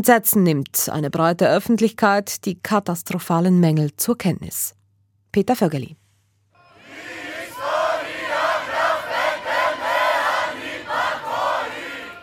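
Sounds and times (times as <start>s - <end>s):
speech: 0.0s - 6.0s
crowd of protesters roaring and chanting during street riots: 6.6s - 12.2s.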